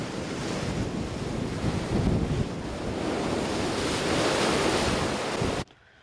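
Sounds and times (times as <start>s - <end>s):
heavy ocean surf pounding the coast: 0.0s - 5.7s
wind buffeting the microphone: 0.0s - 5.7s.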